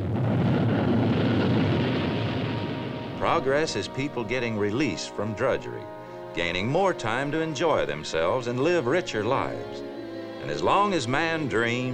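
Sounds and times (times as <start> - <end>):
roar of a rocket: 0.0 - 4.2
speech: 3.2 - 11.9.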